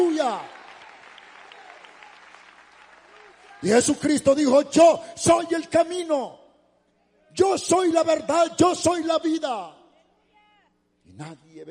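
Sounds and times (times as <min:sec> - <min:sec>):
church congregation applause of praise: 0:00.0 - 0:04.5
speech: 0:03.6 - 0:06.4, 0:07.4 - 0:09.8, 0:11.2 - 0:11.6.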